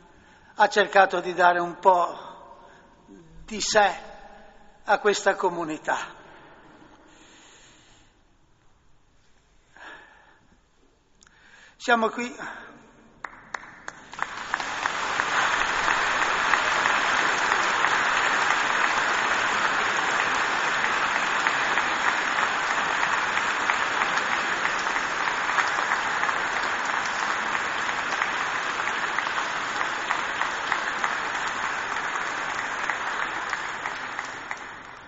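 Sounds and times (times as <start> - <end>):
speech: 0.6 - 2.3, 3.5 - 4.1, 4.8 - 6.2, 11.8 - 12.7
audience applause: 13.2 - 35.0.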